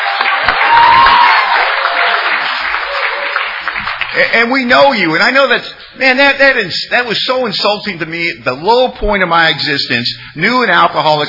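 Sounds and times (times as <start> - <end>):
high whistle-like cheer: 0.0 - 3.5
audience clapping: 0.0 - 4.9
speech: 4.2 - 11.2.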